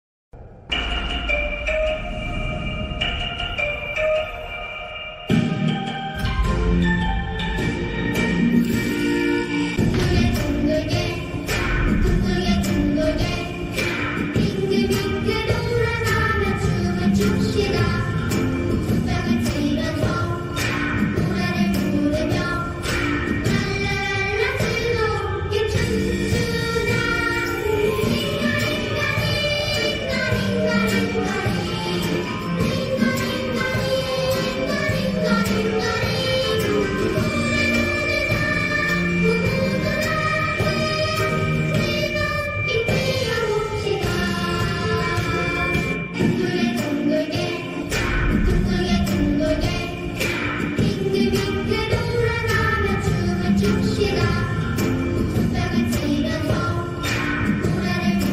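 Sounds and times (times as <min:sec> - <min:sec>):
carousel: 0:00.4 - 0:58.3.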